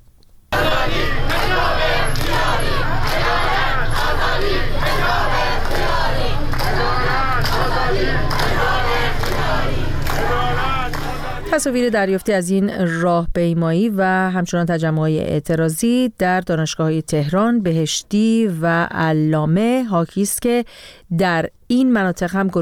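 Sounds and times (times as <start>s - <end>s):
large protest crowd chanting slogans: 0.5s - 12.1s
speech: 11.6s - 22.6s.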